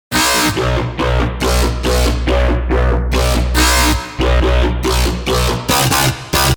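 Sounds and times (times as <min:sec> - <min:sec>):
bass drop: 0:00.1 - 0:06.5.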